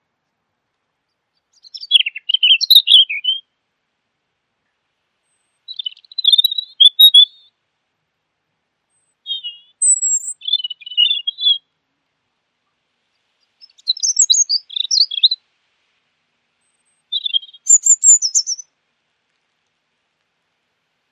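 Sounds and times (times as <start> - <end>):
bird song with twittering and chirps: 1.5 - 3.4, 5.4 - 7.4, 9.0 - 11.6, 13.4 - 15.4, 16.7 - 18.6.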